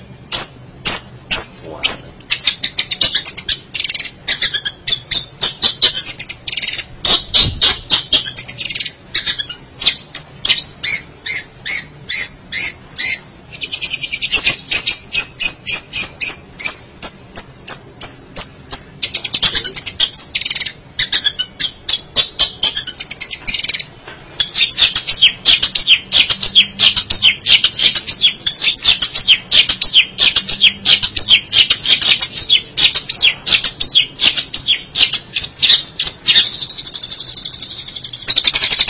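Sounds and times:
shrike song: 0.0s - 38.8s.

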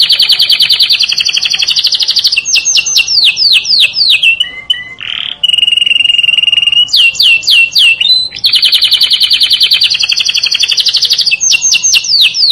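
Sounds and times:
canary song: 0.0s - 12.4s.

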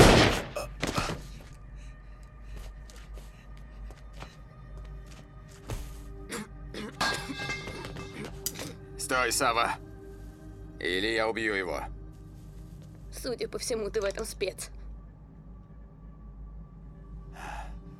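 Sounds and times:
gunshot from an old firearm: 0.0s - 1.2s
clinks and thumps: 7.0s - 8.7s
speech: 9.1s - 9.8s, 10.8s - 12.0s, 13.2s - 14.8s.

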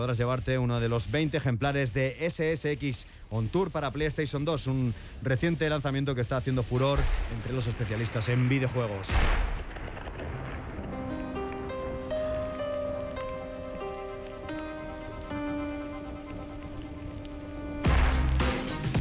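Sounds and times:
speech: 0.0s - 9.5s
rain-like hiss: 0.0s - 18.9s
low rumbling burst: 3.4s - 18.9s
layered synth chords in a song: 10.9s - 18.9s.

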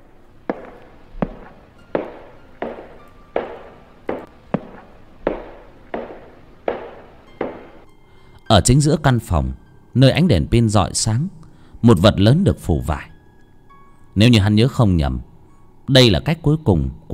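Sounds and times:
footsteps walking: 0.0s - 7.8s
speech: 8.5s - 13.1s, 14.2s - 15.3s, 15.9s - 17.1s.

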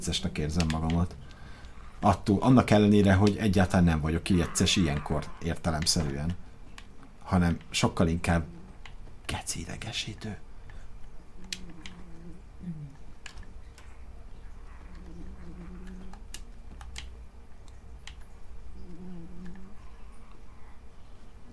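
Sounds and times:
speech: 0.0s - 1.4s, 2.0s - 6.5s, 7.3s - 8.6s, 9.3s - 10.4s
cat making noises while dreaming in sleep: 11.4s - 13.0s, 14.6s - 16.2s, 18.8s - 20.3s.

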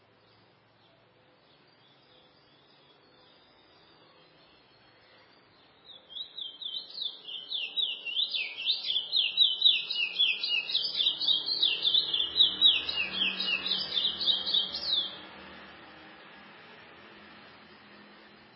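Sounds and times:
chestnut-bellied seed finch singing: 1.8s - 15.4s.

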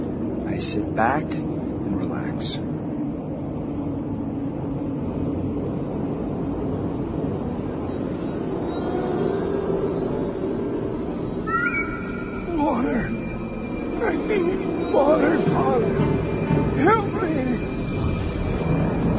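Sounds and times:
aircraft engine drone heard inside plane's nose: 0.0s - 19.1s
speech: 0.5s - 1.5s, 2.4s - 2.7s
high tonal squeal: 7.3s - 19.1s.

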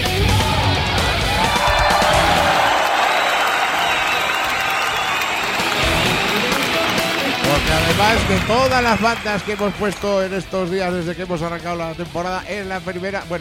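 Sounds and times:
canned applause and crowd cheering: 0.2s - 10.8s
speech: 8.5s - 13.3s.

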